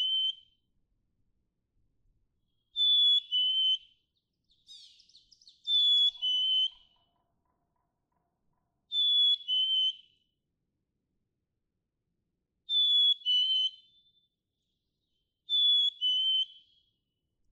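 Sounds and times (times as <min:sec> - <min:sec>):
black-capped chickadee whistling: 0:00.0 - 0:00.5, 0:02.7 - 0:07.1, 0:08.9 - 0:10.2, 0:12.7 - 0:14.2, 0:15.5 - 0:16.8.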